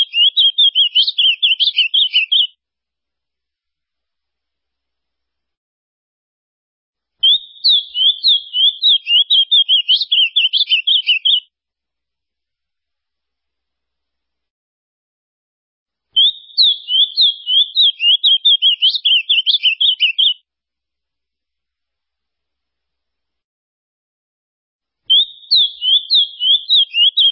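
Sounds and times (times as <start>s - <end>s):
ultramarine grosbeak song: 0.0s - 2.5s, 7.2s - 11.4s, 16.2s - 20.4s, 25.1s - 27.3s.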